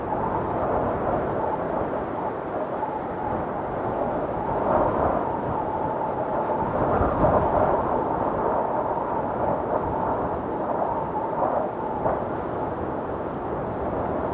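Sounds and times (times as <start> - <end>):
wind storm: 0.0 - 14.3.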